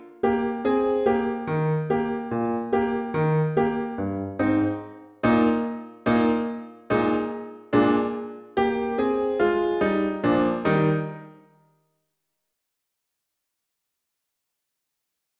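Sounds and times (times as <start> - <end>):
piano: 0.0 - 11.7.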